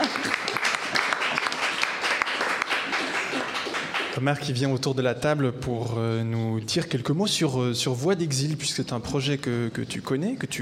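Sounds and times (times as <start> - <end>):
audience applause: 0.0 - 4.2
speech: 4.2 - 10.6.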